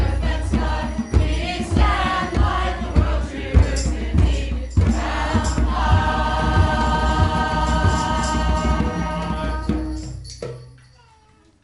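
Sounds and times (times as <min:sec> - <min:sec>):
chanting song: 0:00.0 - 0:10.2.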